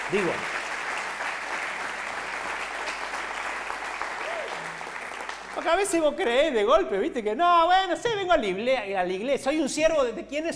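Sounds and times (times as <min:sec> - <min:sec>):
short round of audience applause: 0:00.0 - 0:06.0
speech: 0:00.1 - 0:00.6, 0:05.6 - 0:10.5.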